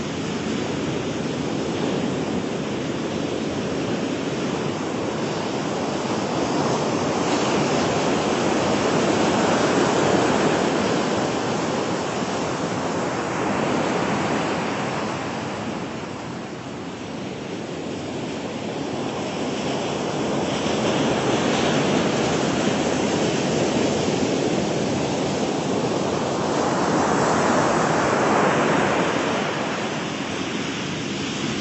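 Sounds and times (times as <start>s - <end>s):
beach waves and surf: 0.0s - 31.5s.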